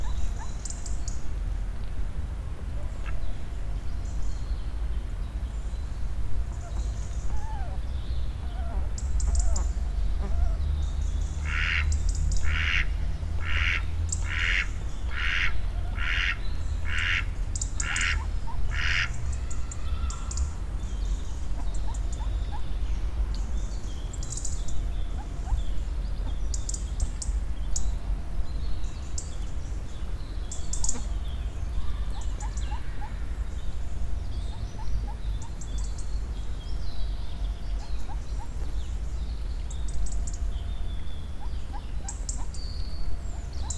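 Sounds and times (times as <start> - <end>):
songbird whistles and chirps: 0.0 - 43.7
duck giving harsh raspy quacks: 11.5 - 11.9, 12.5 - 19.1.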